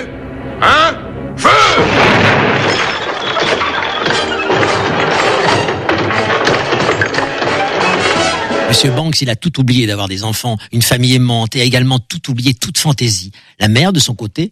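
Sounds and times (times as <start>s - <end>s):
cannon shots firing: 1.7s - 8.2s
speech: 8.7s - 14.4s.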